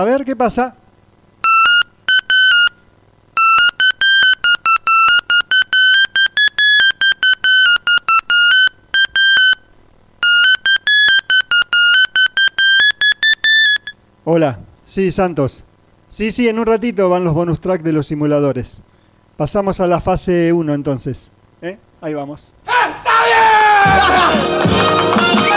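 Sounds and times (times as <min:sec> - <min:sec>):
speech: 0:00.0 - 0:00.8, 0:14.3 - 0:22.6, 0:23.8 - 0:25.4
electronic telephone beeps of an incoming call in a radio studio: 0:01.4 - 0:02.8, 0:03.4 - 0:09.6, 0:10.2 - 0:14.0.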